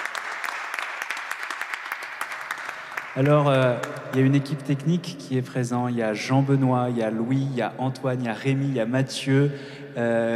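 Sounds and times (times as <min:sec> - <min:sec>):
audience applause at a concert after a song: 0:00.0 - 0:04.0
speech: 0:03.2 - 0:10.3.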